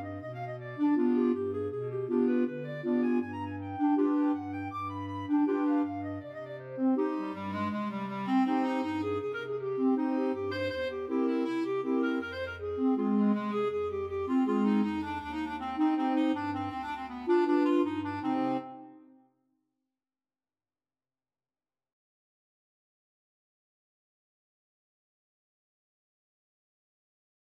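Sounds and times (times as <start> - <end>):
clarinet choir: 0.0 - 19.2.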